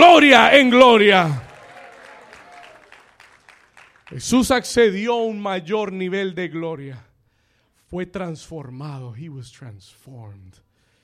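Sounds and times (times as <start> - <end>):
speech: 0.2 - 1.4, 4.1 - 7.1, 7.9 - 10.6
crowd applause: 0.7 - 4.5.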